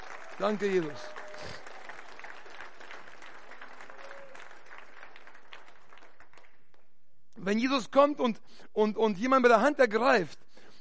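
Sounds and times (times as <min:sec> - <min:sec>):
audience clapping hands: 0:00.0 - 0:07.0
speech: 0:00.4 - 0:01.6, 0:07.4 - 0:10.4.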